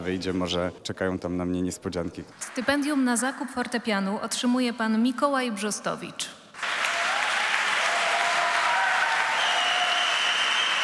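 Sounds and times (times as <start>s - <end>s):
speech: 0.0s - 6.8s
loud audience applause: 6.6s - 10.8s.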